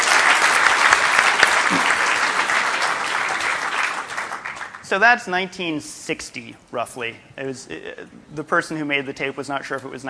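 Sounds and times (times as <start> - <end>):
audience applause: 0.0 - 4.8
speech: 4.9 - 10.0.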